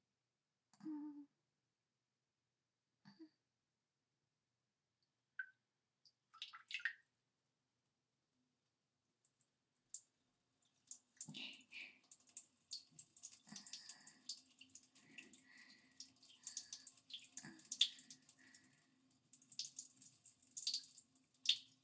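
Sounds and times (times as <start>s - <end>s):
person urinating: 6.4s - 7.0s, 9.2s - 21.8s.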